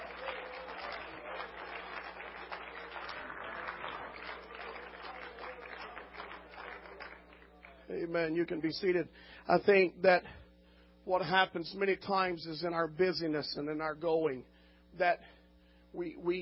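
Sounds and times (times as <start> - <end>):
audience clapping hands in praise: 0.0 - 7.9
speech: 7.9 - 10.4, 11.1 - 16.4.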